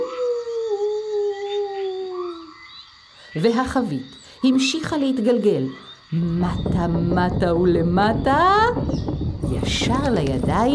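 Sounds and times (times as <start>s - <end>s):
dog howling while running away: 0.0s - 2.6s
speech: 3.4s - 10.7s.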